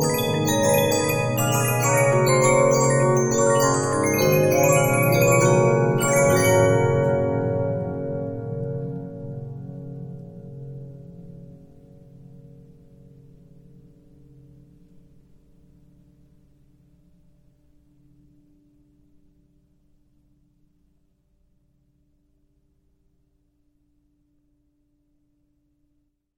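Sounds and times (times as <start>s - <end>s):
Regina 15-inch disc music box: 0.0s - 8.6s.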